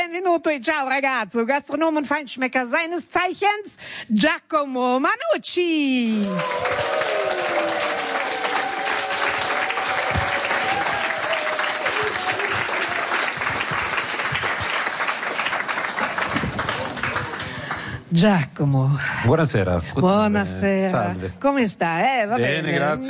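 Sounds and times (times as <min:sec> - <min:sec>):
speech: 0:00.0 - 0:07.2, 0:18.1 - 0:23.0
audience applause: 0:06.2 - 0:18.1.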